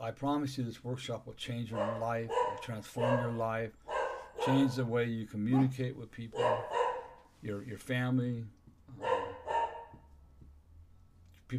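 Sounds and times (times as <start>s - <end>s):
speech: 0.0s - 3.8s, 4.4s - 6.8s, 7.4s - 9.2s
dogs barking in a backyard: 1.7s - 7.3s, 8.9s - 10.1s.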